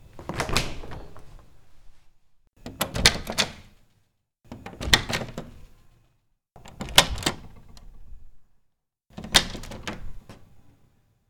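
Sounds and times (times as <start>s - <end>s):
door opening: 0.0s - 1.7s, 2.6s - 3.8s, 4.5s - 5.8s, 6.6s - 8.3s, 9.1s - 10.6s.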